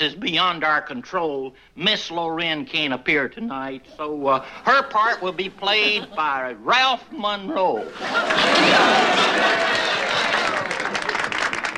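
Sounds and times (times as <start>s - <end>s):
speech: 0.0s - 10.4s
laughter: 3.8s - 11.7s
audience applause: 7.9s - 11.7s.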